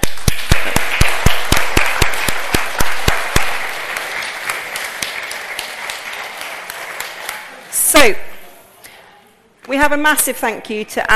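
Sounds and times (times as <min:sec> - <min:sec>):
audience round of applause: 0:00.0 - 0:07.8
speech: 0:08.0 - 0:08.2, 0:09.8 - 0:11.1.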